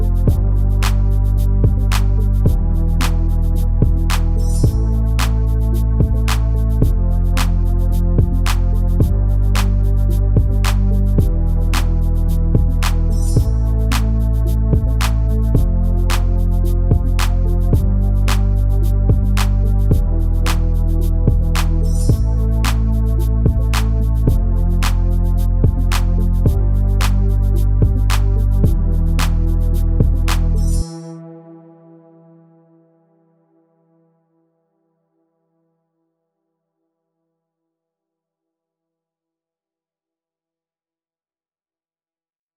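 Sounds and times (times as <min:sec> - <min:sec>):
cinematic vector bass at 110 BPM in A minor: 0:00.0 - 0:31.0.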